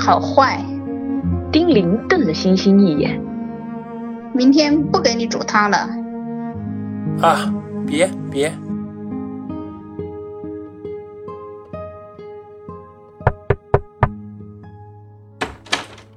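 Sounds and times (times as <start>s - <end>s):
speech: 0.0s - 0.7s, 1.5s - 3.3s, 4.4s - 6.0s, 7.2s - 8.7s
soft music: 0.0s - 16.1s
knocking on a door: 13.3s - 14.2s, 15.4s - 16.1s.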